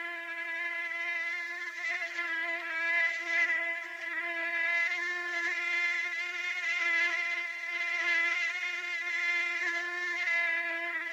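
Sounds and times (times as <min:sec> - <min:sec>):
mosquito wing whine: 0:00.0 - 0:11.1.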